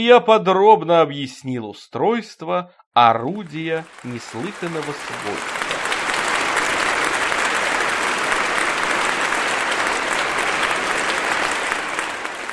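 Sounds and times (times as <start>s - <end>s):
speech: 0.0s - 5.8s
applause of courtiers: 3.2s - 12.5s.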